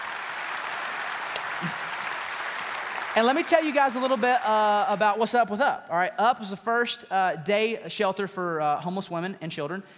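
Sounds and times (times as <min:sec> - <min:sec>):
audience applauding to welcome guests to the stage: 0:00.0 - 0:05.5
speech: 0:01.6 - 0:01.9, 0:03.2 - 0:09.9.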